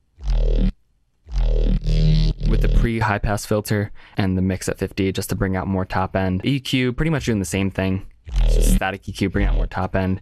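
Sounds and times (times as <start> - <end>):
gritty distorted synth bass growl: 0.0 - 3.1, 8.3 - 8.8, 9.4 - 9.8
speech: 2.6 - 10.2.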